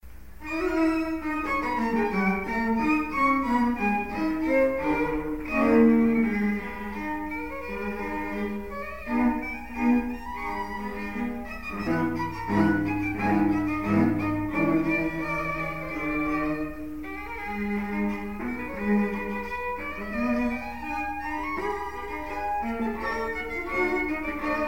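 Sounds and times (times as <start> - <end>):
string trio playing: 0.2 - 24.6.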